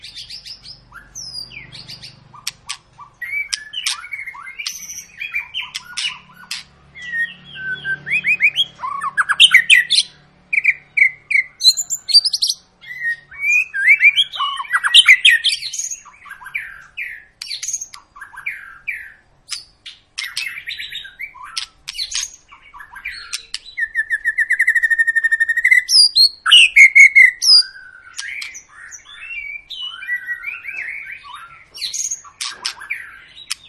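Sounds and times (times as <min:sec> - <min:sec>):
White-rumped shama song: 0:00.0 - 0:33.6.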